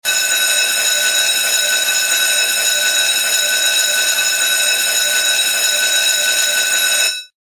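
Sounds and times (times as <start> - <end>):
long ringing: 0.0 - 7.3.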